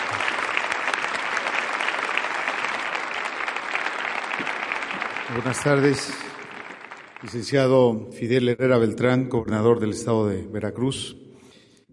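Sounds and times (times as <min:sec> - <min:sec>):
audience applause: 0:00.0 - 0:07.7
speech: 0:05.3 - 0:06.2, 0:07.2 - 0:11.2.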